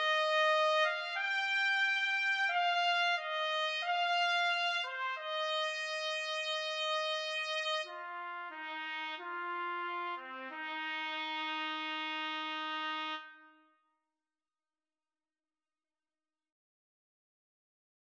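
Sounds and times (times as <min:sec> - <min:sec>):
trumpet duet: 0:00.0 - 0:13.6.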